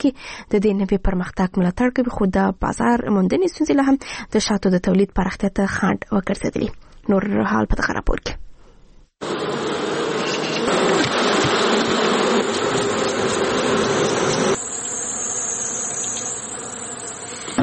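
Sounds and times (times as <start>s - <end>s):
speech: 0.0s - 8.4s
honey bees buzzing at a bee farm in Helmand: 9.2s - 17.6s.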